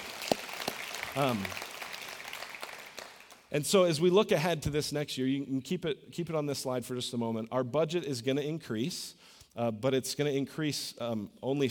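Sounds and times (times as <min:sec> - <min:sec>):
audience clapping: 0:00.0 - 0:03.5
speech: 0:01.2 - 0:01.6, 0:03.5 - 0:11.6.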